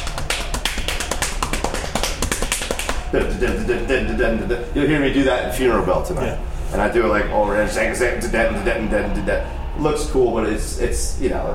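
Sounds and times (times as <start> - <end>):
hand drumming pattern of thumb hits and palm slaps on a surface: 0.0 - 3.4
speech: 3.1 - 11.5.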